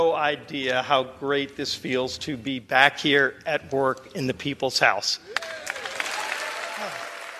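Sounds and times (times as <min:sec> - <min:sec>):
speech: 0:00.0 - 0:05.6
standing ovation applause in the House of Representatives: 0:05.3 - 0:07.3.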